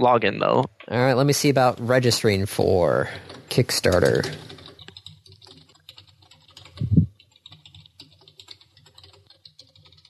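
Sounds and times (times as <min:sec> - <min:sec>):
speech: 0:00.0 - 0:04.6
computer keyboard typing: 0:02.6 - 0:10.0.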